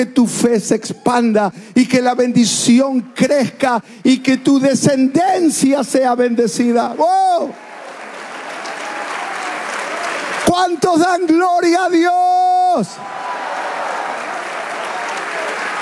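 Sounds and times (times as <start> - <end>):
man's raised voice calling out: 0.0 - 7.6, 10.5 - 13.0
speech: 0.0 - 7.6, 10.6 - 13.1
audience applause: 6.9 - 11.2, 13.0 - 15.8.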